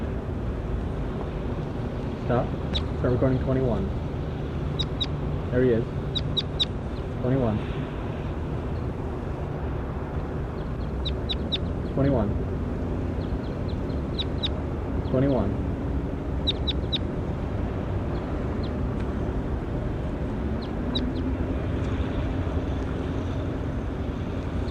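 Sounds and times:
steady low rumbling noise: 0.0s - 24.6s
speech: 2.3s - 4.1s, 5.5s - 6.0s, 7.2s - 7.8s, 12.0s - 12.4s, 15.1s - 15.6s
bird chirping: 4.7s - 5.2s, 6.0s - 7.2s, 10.5s - 12.1s, 13.1s - 15.4s, 16.4s - 17.1s.

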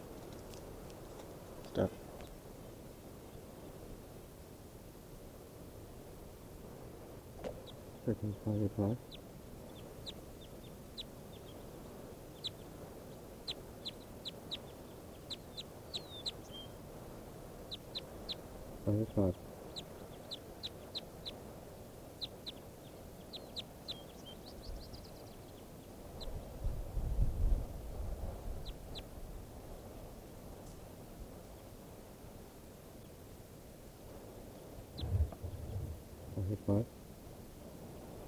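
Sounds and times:
low rumble: 0.0s - 38.2s
speech: 1.8s - 2.0s, 8.1s - 9.2s
short high chirping bird calls: 7.4s - 27.4s, 28.5s - 29.1s, 34.5s - 36.6s.

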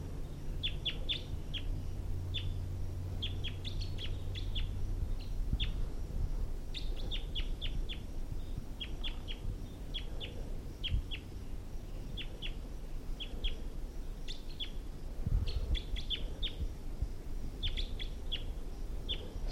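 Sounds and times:
low rumble: 0.0s - 19.5s
wild male bird singing in trees: 0.0s - 19.5s.

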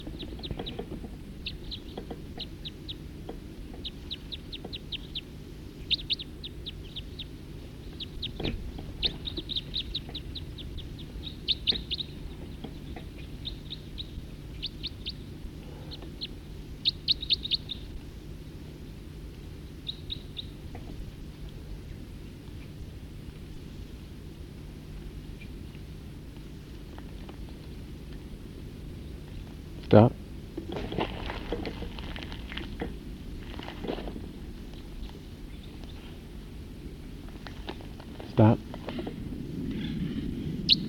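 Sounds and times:
birds chirping in a tree: 0.0s - 18.0s, 18.8s - 22.8s, 34.5s - 36.3s, 37.0s - 40.8s
steady low rumble: 0.0s - 40.8s
speech: 29.9s - 30.1s.

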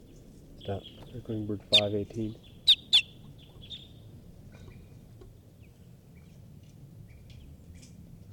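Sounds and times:
speech: 0.7s - 2.5s
wild bird giving alarm calls: 0.8s - 4.0s.

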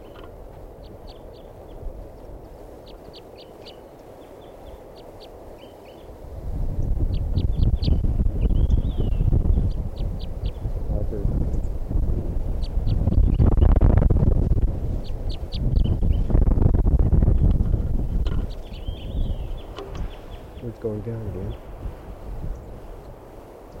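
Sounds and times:
wild bird calling: 0.0s - 6.2s, 6.8s - 10.8s, 11.5s - 13.7s, 14.9s - 16.3s, 18.2s - 21.8s
loud rumbling wind noise: 0.0s - 23.7s.

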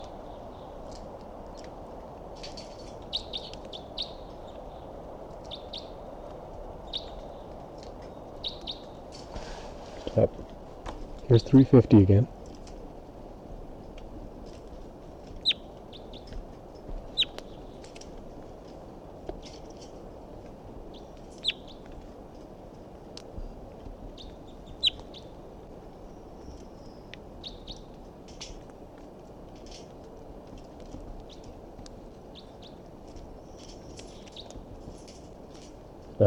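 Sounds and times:
low hiss: 0.0s - 36.2s
wild bird chirping in pine tree: 2.6s - 6.0s, 6.8s - 9.2s, 15.4s - 16.4s, 17.1s - 18.0s, 20.9s - 21.9s, 24.2s - 25.4s, 26.0s - 28.5s, 32.3s - 32.8s, 33.4s - 35.2s
speech: 10.2s - 10.4s, 11.3s - 12.4s.

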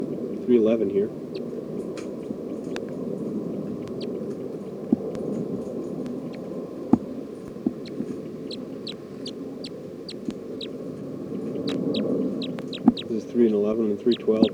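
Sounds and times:
bird chittering call: 0.0s - 14.5s
speech: 0.5s - 1.4s, 13.7s - 14.5s
sharp clicks: 3.7s - 10.8s, 11.4s - 13.2s, 14.0s - 14.5s.

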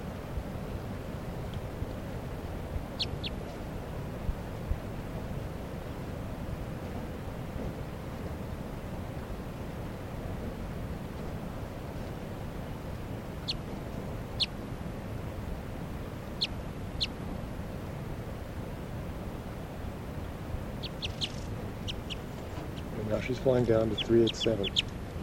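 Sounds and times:
steady low rushing background of wind or water: 0.0s - 25.2s
wild crossbill giving chip calls: 3.0s - 3.4s, 20.8s - 25.0s
speech: 23.3s - 24.9s.

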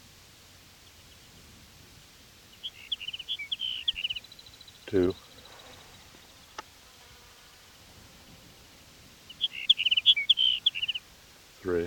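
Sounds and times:
steady hiss: 0.0s - 11.8s
sage sparrow song from a colony: 2.5s - 6.6s, 9.3s - 11.0s
speech: 4.9s - 5.2s.

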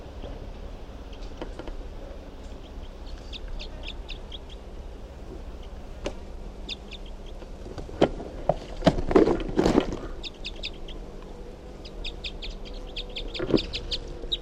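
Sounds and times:
steady low hum: 0.0s - 14.4s
captured wild bird squawking: 2.5s - 4.7s, 6.6s - 7.4s, 10.2s - 11.1s, 11.8s - 14.4s.

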